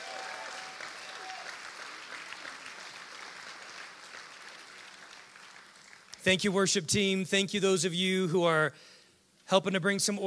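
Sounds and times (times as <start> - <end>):
audience clapping: 0.0 - 6.3
speech: 6.2 - 8.9, 9.5 - 10.2.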